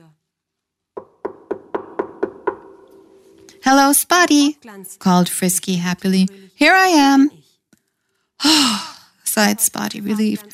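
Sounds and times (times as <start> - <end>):
knocking on a wooden door: 1.0 - 3.2
speech: 3.7 - 7.4, 8.4 - 10.5.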